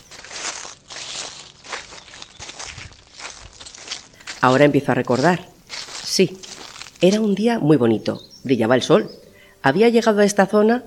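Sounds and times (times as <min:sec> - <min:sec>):
footsteps crunching on dry fallen autumn leaves: 0:00.0 - 0:08.3
speech: 0:04.4 - 0:05.5, 0:06.2 - 0:10.8.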